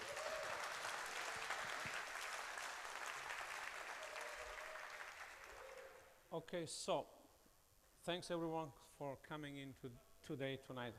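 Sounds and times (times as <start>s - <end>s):
audience applause welcoming a speaker to a talk: 0.0s - 6.1s
speech: 6.3s - 7.2s, 8.0s - 10.9s.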